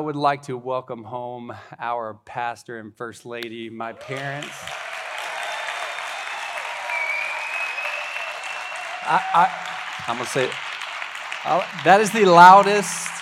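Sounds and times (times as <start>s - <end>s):
speech: 0.0s - 4.8s, 9.1s - 10.7s, 11.4s - 13.2s
loud crowd applause: 4.0s - 13.2s.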